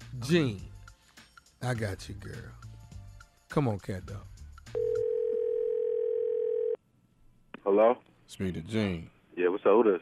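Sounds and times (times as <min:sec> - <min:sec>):
speech: 0:00.2 - 0:00.7, 0:01.6 - 0:02.7, 0:03.5 - 0:04.8, 0:07.7 - 0:10.0
telephone dial tone: 0:04.8 - 0:06.8.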